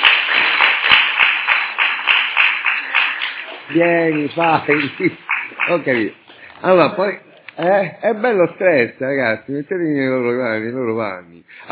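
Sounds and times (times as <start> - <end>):
audience applause: 0.0 - 6.1
speech: 3.7 - 11.7.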